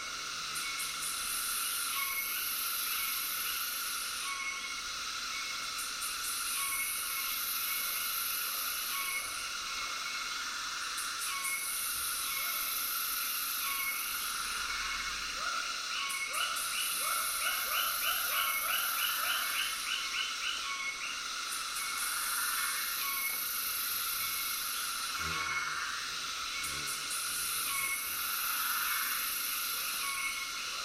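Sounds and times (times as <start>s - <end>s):
tropical cicadas: 0.0s - 30.8s
tropical frogs: 0.0s - 30.8s.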